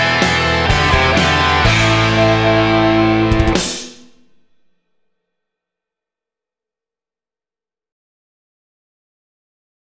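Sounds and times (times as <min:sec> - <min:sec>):
rock guitar: 0:00.0 - 0:04.6.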